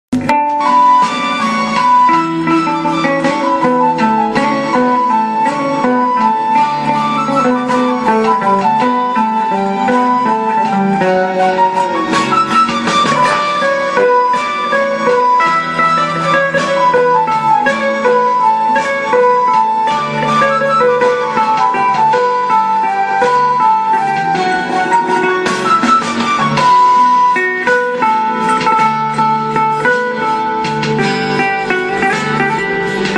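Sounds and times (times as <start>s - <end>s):
electric guitar: 0.1s - 33.1s.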